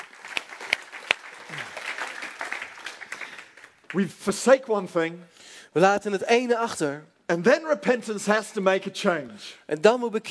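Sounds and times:
audience applauding: 0:00.0 - 0:04.2
speech: 0:03.9 - 0:10.2.

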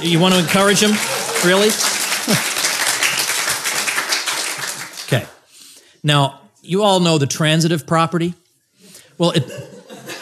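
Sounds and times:
speech: 0:00.0 - 0:02.6, 0:05.1 - 0:05.4, 0:06.0 - 0:08.4, 0:09.2 - 0:09.7
laughter: 0:00.0 - 0:03.7, 0:09.3 - 0:10.1
audience clapping: 0:00.0 - 0:05.4.

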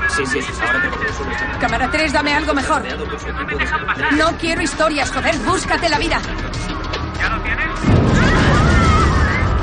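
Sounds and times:
speech: 0:00.2 - 0:06.6
explosion: 0:07.8 - 0:09.6.

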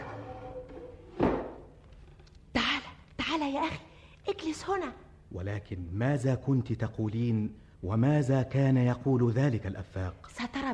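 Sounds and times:
door being shut: 0:00.7 - 0:01.6
speech: 0:03.4 - 0:10.7.

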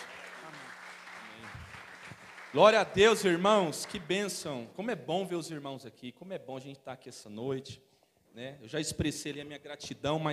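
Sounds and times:
audience applause: 0:00.0 - 0:04.4
speech: 0:02.5 - 0:10.3.

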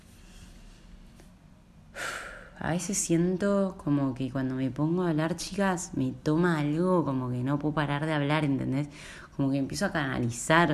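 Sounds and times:
faint noise: 0:00.0 - 0:10.7
quick deep breath drawn in sharply: 0:01.9 - 0:02.6
speech: 0:02.6 - 0:10.7.

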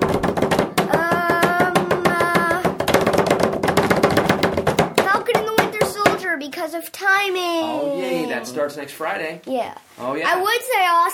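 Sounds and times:
drum roll of hands tapping on a hard surface: 0:00.0 - 0:06.3
speech: 0:06.8 - 0:11.1.

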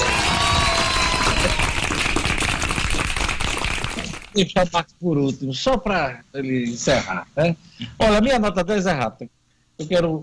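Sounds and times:
group clapping: 0:00.0 - 0:04.4
speech: 0:04.4 - 0:10.2.

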